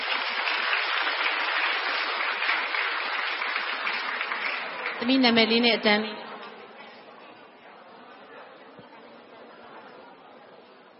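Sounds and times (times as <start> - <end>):
audience applause: 0.0 - 5.2
speech: 5.0 - 6.2.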